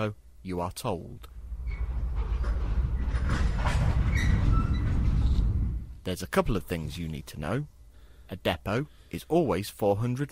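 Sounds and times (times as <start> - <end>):
speech: 0.0 - 1.3, 6.0 - 10.3
trains running on rails: 2.2 - 5.4.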